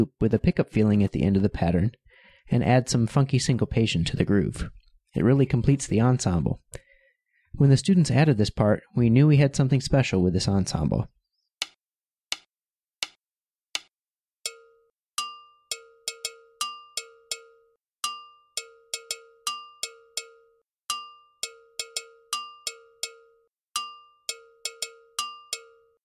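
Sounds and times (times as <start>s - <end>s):
speech: 0.0s - 6.8s, 7.6s - 11.2s
two interlocking metallic bell parts in ensemble: 14.5s - 26.0s.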